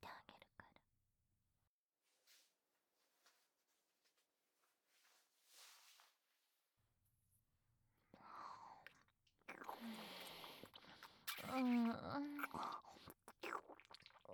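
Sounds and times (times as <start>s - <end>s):
deep kissing ASMR: 9.5s - 13.5s.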